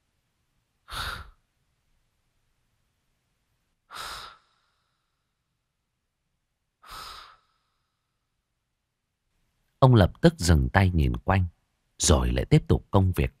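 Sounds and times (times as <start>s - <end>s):
soft heavy wheezing breaths: 0.9s - 1.4s, 3.9s - 5.4s, 6.8s - 8.3s
speech: 9.8s - 13.3s.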